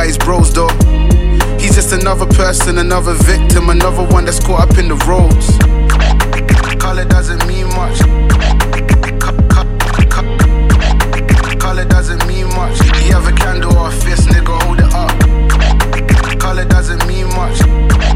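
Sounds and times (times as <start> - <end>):
lo-fi hip hop vocals: 0.0 - 18.1
vinyl scratch loops: 4.1 - 18.1.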